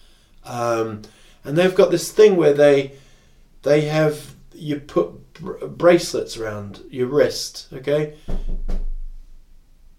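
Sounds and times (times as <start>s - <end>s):
speech: 0.4s - 3.0s, 3.6s - 8.8s
knocking on a door: 8.3s - 9.1s.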